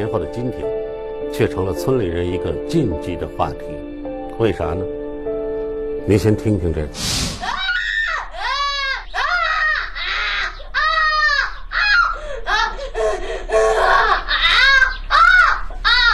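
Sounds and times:
speech: 0.0s - 5.0s, 6.1s - 7.5s
child crying and wailing: 7.4s - 16.1s.

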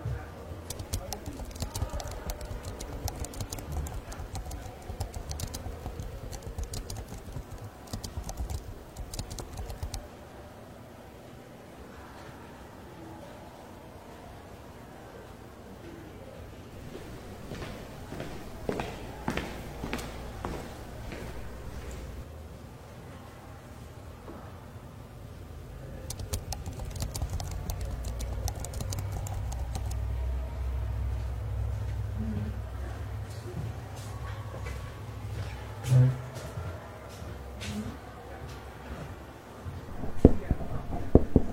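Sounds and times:
faint murmured voices: 0.0s - 41.5s
typing in a library: 0.7s - 10.0s, 26.1s - 30.0s.

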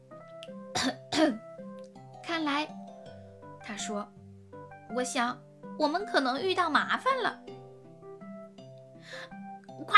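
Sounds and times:
speech: 0.8s - 1.4s, 2.4s - 2.8s, 3.8s - 4.2s, 4.9s - 7.5s
throat clearing: 0.8s - 1.4s.

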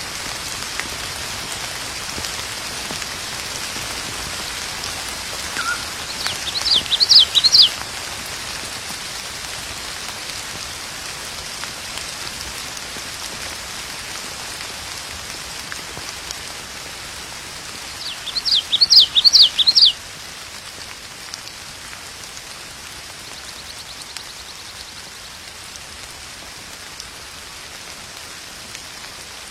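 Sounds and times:
steady mountain rain: 0.0s - 29.5s
bird chirping: 5.5s - 7.8s, 18.0s - 20.0s.

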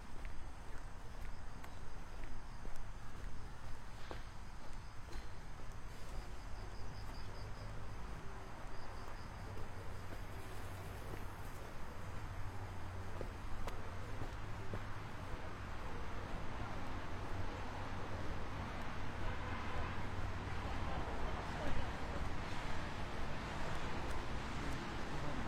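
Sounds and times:
traffic and street noise: 0.0s - 25.4s
vehicles passing: 0.0s - 25.4s
faint voices: 5.5s - 25.4s.

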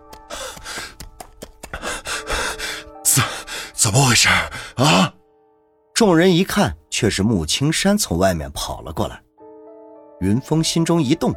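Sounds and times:
heavy panting breath: 0.2s - 5.1s
speech: 3.2s - 5.2s, 6.0s - 9.2s, 10.2s - 11.3s.

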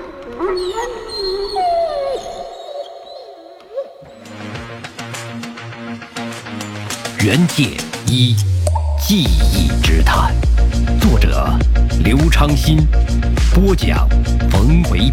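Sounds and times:
dogs whimpering and howling: 0.0s - 4.1s
speech: 0.3s - 2.4s, 7.2s - 8.5s, 9.1s - 15.1s
rhythmic percussive music: 4.1s - 15.1s.

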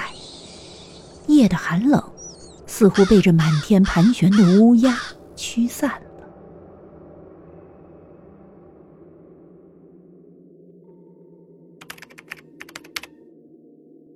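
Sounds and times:
speech: 1.3s - 2.1s, 2.8s - 6.1s
typing on a computer keyboard: 11.8s - 13.1s.

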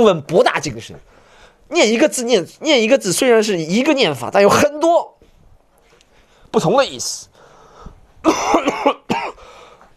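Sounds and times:
speech: 0.0s - 5.2s, 6.5s - 7.3s, 8.2s - 9.0s
person coughing: 8.2s - 9.5s.

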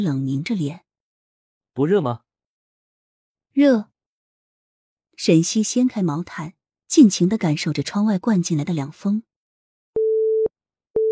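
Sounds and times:
speech: 0.0s - 0.8s, 1.8s - 2.2s, 3.6s - 3.9s, 5.2s - 9.3s
telephone busy tone: 10.0s - 11.1s.

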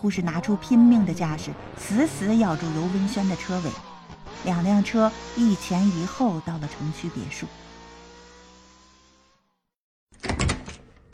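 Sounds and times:
speech: 0.0s - 7.6s
door being opened: 10.1s - 11.1s.

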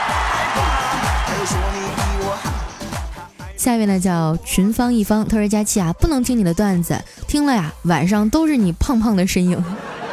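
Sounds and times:
applause: 0.0s - 3.1s
cheering: 0.0s - 3.1s
speech: 1.4s - 2.6s, 3.6s - 9.9s
laughter: 9.5s - 10.1s.

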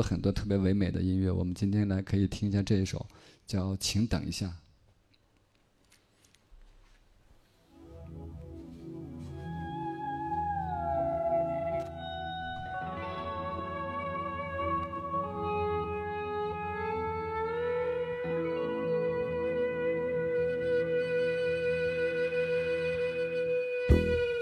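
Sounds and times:
speech: 0.0s - 4.6s
guitar imitating seagull cries: 10.0s - 24.3s.

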